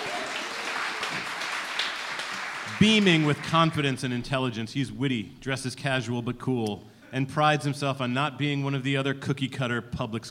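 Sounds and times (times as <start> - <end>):
raucous applause: 0.0 - 3.8
speech: 2.8 - 10.2.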